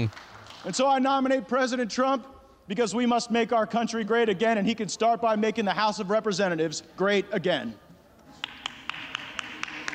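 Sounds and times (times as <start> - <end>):
speech: 0.0 - 7.8
single lone hand clap: 8.4 - 9.9.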